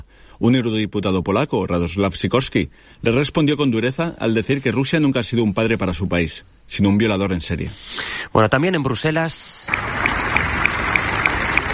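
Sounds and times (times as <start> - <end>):
speech: 0.4 - 10.1
applause at the European Parliament as an ovation for David Sassoli: 9.7 - 11.7.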